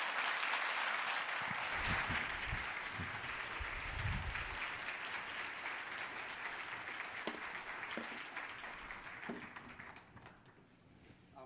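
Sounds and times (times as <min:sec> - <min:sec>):
audience applause welcoming a family on stage: 0:00.0 - 0:10.7.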